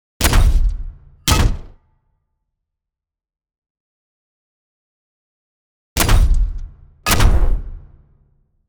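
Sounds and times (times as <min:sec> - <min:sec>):
brutal gunshot: 0:00.2 - 0:01.9, 0:06.0 - 0:08.3.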